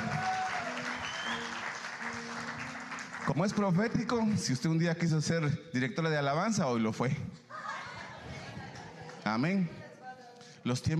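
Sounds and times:
audience applauding: 0.0 - 4.3
speech: 3.3 - 7.4, 9.3 - 9.8, 10.6 - 10.9
laughter: 7.5 - 9.3.

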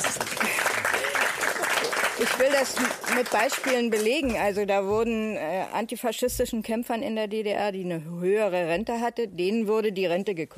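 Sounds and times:
audience applause: 0.0 - 4.2
speech: 2.4 - 10.5.

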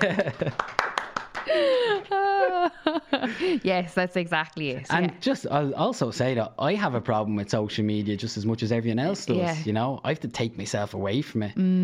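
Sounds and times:
speech: 0.0 - 0.5, 3.5 - 11.8
laughter: 0.0 - 0.8, 1.4 - 3.6
clapping: 0.0 - 2.1.

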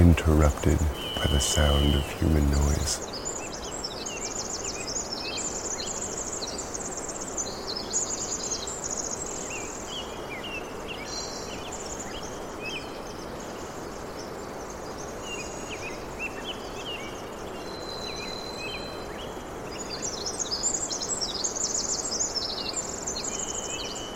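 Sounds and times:
rain: 0.0 - 3.0
speech: 0.2 - 3.2.

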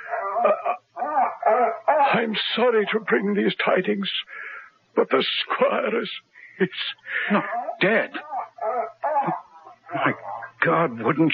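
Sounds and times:
dog whimpering: 0.0 - 2.3, 7.3 - 10.6
speech: 0.4 - 0.8, 1.6 - 8.3, 9.2 - 11.3.

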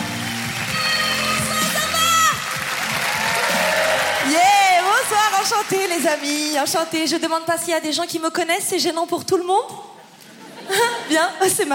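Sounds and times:
audience clapping and cheering: 0.0 - 7.6
speech: 5.6 - 9.9, 10.7 - 11.7
laughter: 10.0 - 11.3.

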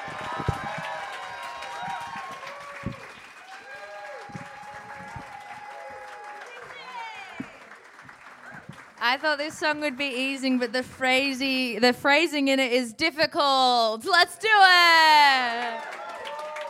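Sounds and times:
crowd clapping: 0.0 - 11.5, 15.2 - 16.6
whistles: 2.7 - 3.6
speech: 9.1 - 15.9.

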